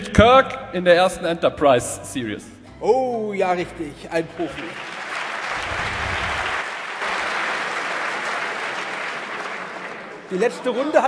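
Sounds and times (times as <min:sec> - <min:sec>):
speech: 0:00.1 - 0:04.9, 0:10.3 - 0:11.0
studio audience applauding on a German quiz show: 0:04.2 - 0:11.0.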